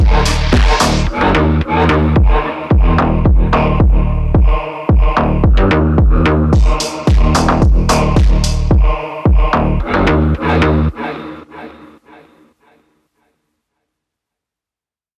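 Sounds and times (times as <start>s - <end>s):
phonk music: 0.0s - 11.7s.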